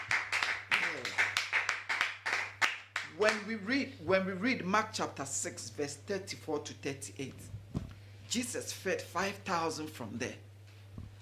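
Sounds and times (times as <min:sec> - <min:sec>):
audience clapping hands in steady rhythm: 0:00.0 - 0:03.4
low constant hum: 0:00.0 - 0:11.2
speech: 0:03.2 - 0:07.6, 0:08.3 - 0:10.5.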